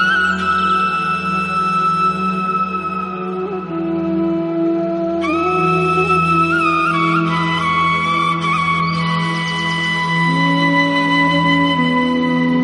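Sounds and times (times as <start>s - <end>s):
devotional flute music: 0.0s - 12.6s.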